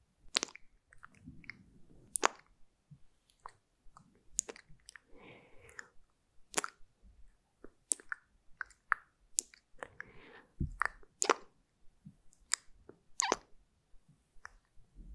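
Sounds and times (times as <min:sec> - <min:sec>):
moist squishing: 0:00.3 - 0:02.6, 0:03.3 - 0:06.9, 0:07.6 - 0:11.6
mouth clicks, tics and wet smacking pops: 0:00.3 - 0:02.6, 0:03.2 - 0:06.9, 0:07.6 - 0:13.5, 0:14.4 - 0:14.8.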